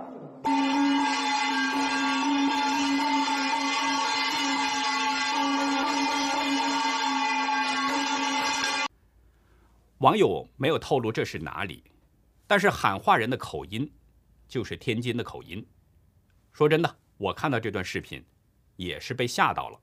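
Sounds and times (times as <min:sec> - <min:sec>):
gong being banged at residents' doors: 0:00.5 - 0:08.9
speech: 0:10.0 - 0:11.9, 0:12.5 - 0:15.8, 0:16.6 - 0:19.8.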